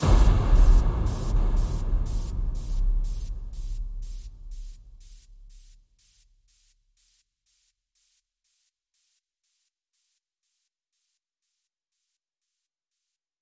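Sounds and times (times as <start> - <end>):
noises: 0.0 - 5.7.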